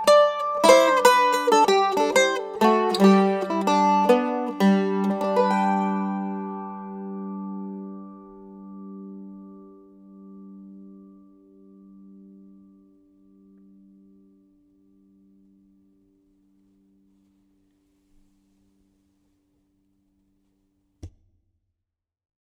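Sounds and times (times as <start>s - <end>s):
mandolin: 0.0s - 12.6s.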